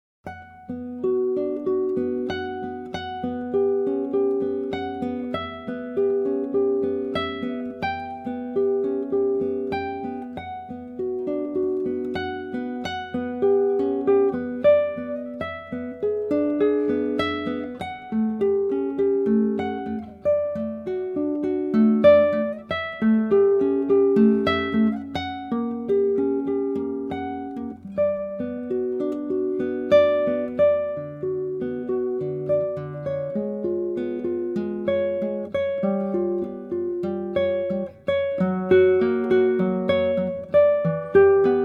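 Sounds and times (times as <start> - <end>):
prelude: 0.3 - 41.6.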